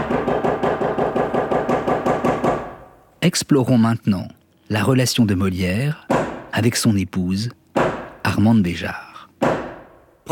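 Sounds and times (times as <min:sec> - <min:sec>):
knocks announcing theatre curtain: 0:00.0 - 0:03.0, 0:06.1 - 0:06.6, 0:07.7 - 0:08.5, 0:09.4 - 0:10.2
speech: 0:03.2 - 0:07.6, 0:08.2 - 0:09.1.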